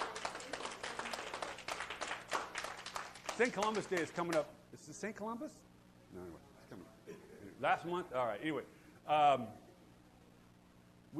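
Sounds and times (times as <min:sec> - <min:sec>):
audience applause: 0:00.0 - 0:04.3
speech: 0:03.4 - 0:09.6.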